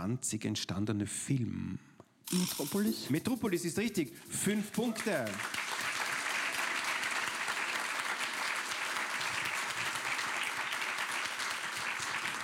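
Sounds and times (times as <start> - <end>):
speech: 0.0 - 5.6
studio audience applause: 4.5 - 12.4.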